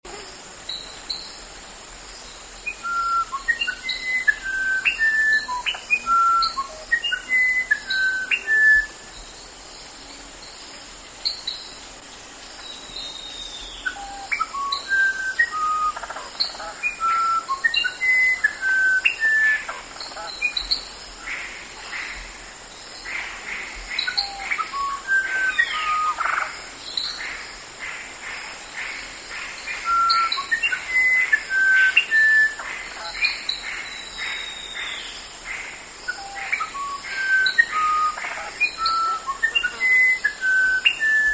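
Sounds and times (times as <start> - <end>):
wren singing: 2.6 - 9.4, 12.6 - 20.9, 22.9 - 27.2, 29.6 - 35.3, 36.0 - 41.3.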